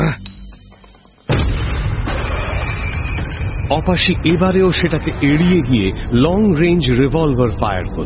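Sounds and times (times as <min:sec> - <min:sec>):
mini grenade explosion on a rooftop: 0:01.3 - 0:06.8
sustained low rumble after a grenade blast: 0:01.3 - 0:08.0
speech: 0:03.7 - 0:08.0.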